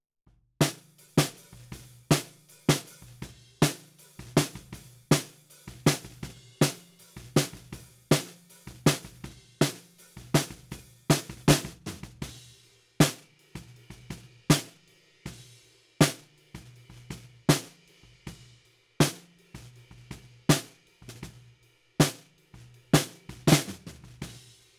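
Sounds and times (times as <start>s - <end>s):
snare drum bottom: 0.6s - 12.4s, 13.0s - 14.8s, 16.0s - 17.8s, 19.0s - 19.7s, 20.5s - 21.4s, 22.0s - 22.3s, 23.0s - 24.5s.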